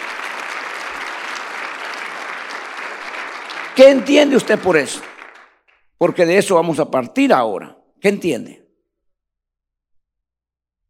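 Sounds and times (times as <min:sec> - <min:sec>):
audience applause: 0:00.0 - 0:05.7
speech: 0:03.8 - 0:05.1, 0:06.0 - 0:08.6.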